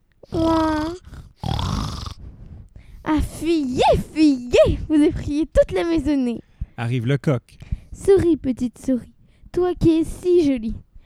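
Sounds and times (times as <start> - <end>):
pig grunting: 0.3 - 2.2
speech: 3.4 - 4.0, 4.6 - 10.8.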